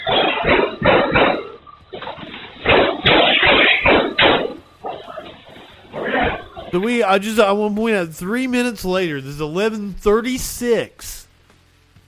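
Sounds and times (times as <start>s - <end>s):
gunfire from a gunman, many rounds fired: 0.0s - 6.8s
speech: 6.7s - 11.2s.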